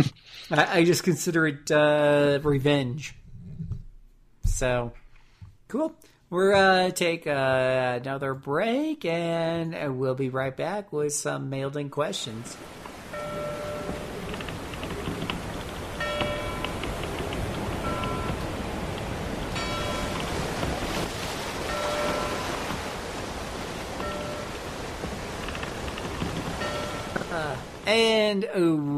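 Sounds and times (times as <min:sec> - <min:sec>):
speech: 0:00.0 - 0:03.2, 0:04.6 - 0:05.0, 0:05.7 - 0:13.4, 0:27.9 - 0:28.9
constant hissing wash: 0:12.6 - 0:27.9
ship's bell ringing as vessel arrives in port: 0:13.0 - 0:14.2, 0:16.0 - 0:16.8, 0:17.8 - 0:18.7, 0:19.5 - 0:20.6, 0:21.6 - 0:23.2, 0:23.9 - 0:25.0, 0:26.6 - 0:27.2.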